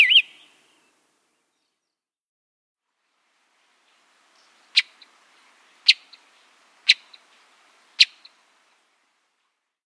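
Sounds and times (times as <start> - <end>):
Hepatic Tanager: 0.0 - 0.9, 4.4 - 5.2, 5.8 - 8.4.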